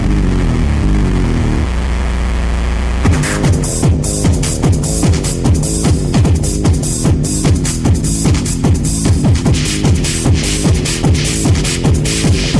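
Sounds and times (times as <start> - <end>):
techno music: 0.0 - 12.5.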